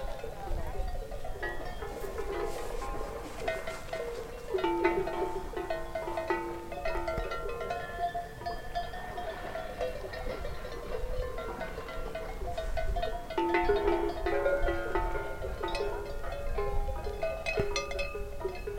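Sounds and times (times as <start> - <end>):
cattle at Anayet: 0.0 - 18.7
water at Anayet: 0.0 - 18.7.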